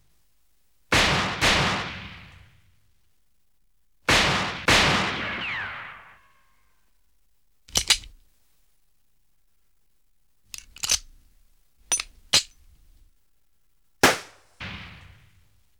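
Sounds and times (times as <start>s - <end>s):
Chinese Uzi submachine gun firing: 1.0s - 2.4s, 4.1s - 6.1s, 14.0s - 15.0s.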